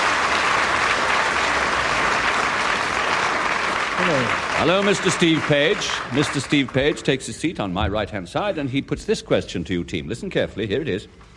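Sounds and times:
audience applause: 0.0s - 7.6s
speech: 4.0s - 11.3s.

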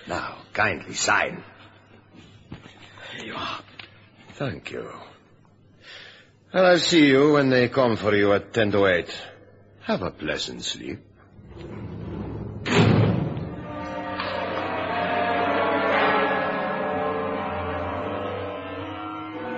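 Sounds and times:
speech: 0.1s - 1.6s, 3.2s - 3.7s, 4.4s - 5.2s, 6.5s - 11.8s
heavy steel door slamming shut with a clang: 11.4s - 18.7s.

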